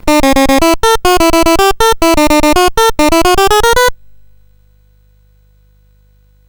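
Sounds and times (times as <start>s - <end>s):
SID CSG8580R5 chip music: 0.0s - 4.4s.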